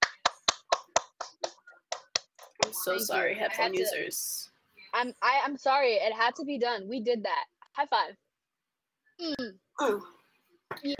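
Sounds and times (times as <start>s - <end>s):
round of applause: 0.0s - 2.8s
speech: 2.7s - 8.2s, 9.2s - 10.9s.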